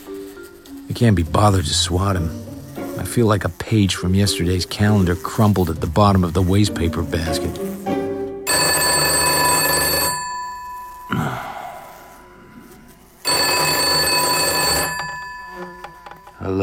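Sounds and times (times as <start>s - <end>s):
speech: 1.0s - 2.4s, 3.0s - 7.7s
old-style telephone bell ringing: 8.5s - 11.1s, 11.8s - 16.4s.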